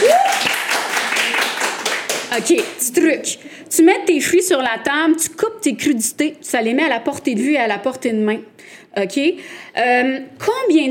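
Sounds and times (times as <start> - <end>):
audience applause: 0.0 - 2.3
speech: 2.3 - 10.8.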